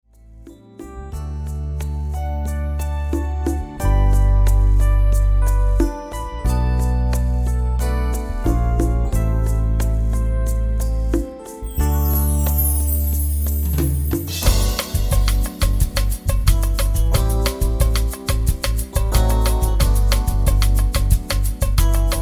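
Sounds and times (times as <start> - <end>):
modern backing track: 0.1 - 22.1.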